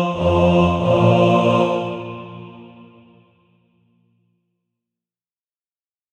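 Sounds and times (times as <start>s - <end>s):
bass: 0.2s - 2.3s.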